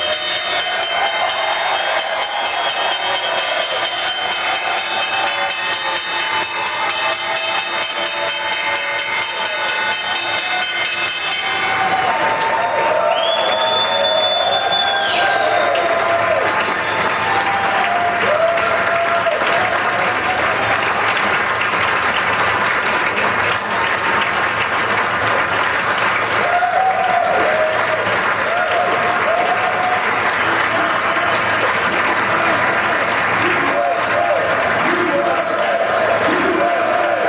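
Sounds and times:
New York Stock Exchange opening bell: 0.0s - 12.1s
crowd cheering: 0.0s - 37.2s.

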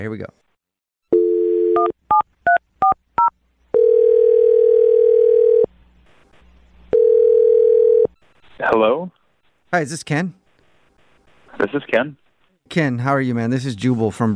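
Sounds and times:
speech: 0.0s - 0.4s, 8.6s - 10.4s, 11.6s - 14.3s
telephone dialing tones: 1.1s - 5.7s, 6.9s - 8.1s.

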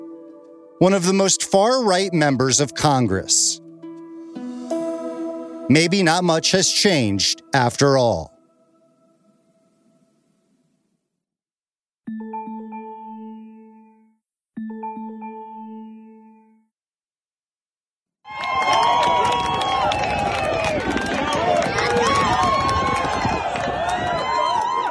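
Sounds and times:
speech: 0.8s - 3.6s, 5.7s - 8.3s
crowd cheering at lacrosse game: 18.3s - 24.8s.

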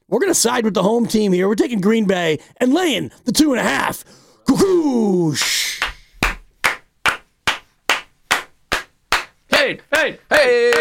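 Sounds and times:
speech: 0.1s - 5.7s, 9.7s - 10.7s
people clapping: 5.4s - 10.7s.

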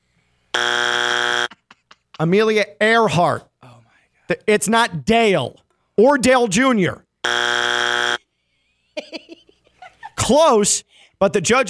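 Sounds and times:
game show buzzer: 0.5s - 1.6s, 7.2s - 8.2s
laughter: 1.5s - 2.2s, 8.6s - 10.3s
speech: 2.2s - 3.5s, 4.3s - 7.0s, 10.3s - 11.6s.

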